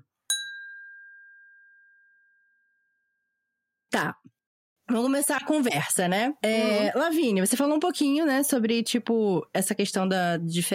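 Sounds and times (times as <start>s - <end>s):
glasses clinking in a toast: 0.3s - 1.6s
speech: 3.9s - 10.7s.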